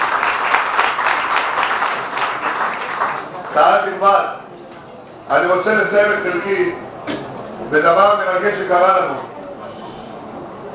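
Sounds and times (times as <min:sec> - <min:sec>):
audience applause: 0:00.0 - 0:03.7
speech: 0:03.6 - 0:04.4, 0:05.3 - 0:06.9, 0:07.7 - 0:09.3.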